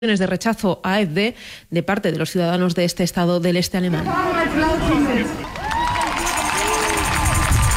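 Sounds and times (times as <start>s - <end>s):
speech: 0.0s - 5.5s
crowd applauding speeches at outdoor rally: 5.3s - 7.7s.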